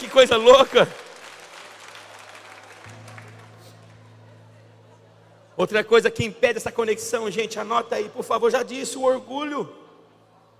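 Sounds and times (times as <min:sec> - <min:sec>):
audience applauding: 0:00.0 - 0:04.5
speech: 0:00.2 - 0:01.1, 0:05.6 - 0:09.8.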